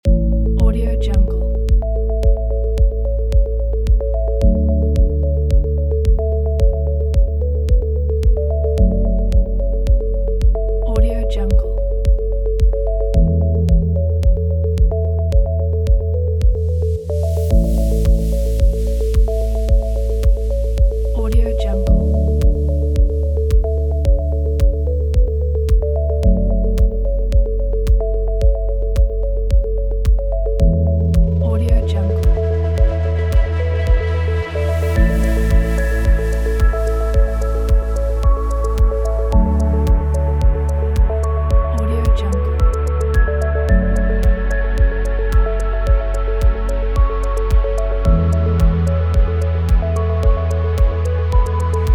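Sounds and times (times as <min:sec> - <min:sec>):
corporate ambient inspiration music: 0:00.0 - 0:51.9.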